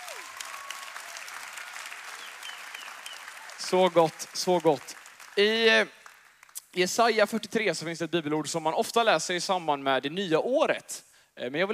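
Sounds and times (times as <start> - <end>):
audience applause: 0.0 - 6.6
speech: 3.6 - 6.0, 6.8 - 11.7.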